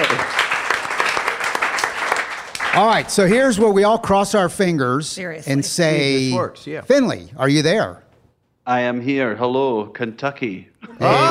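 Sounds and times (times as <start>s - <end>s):
crowd applauding: 0.0s - 3.3s
speech: 2.8s - 8.0s, 8.7s - 11.3s.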